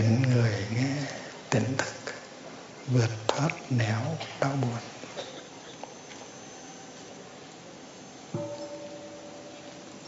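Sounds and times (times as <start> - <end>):
faint hiss: 0.0 - 10.0
speech: 2.9 - 5.0
temple bell struck softly: 8.4 - 10.0.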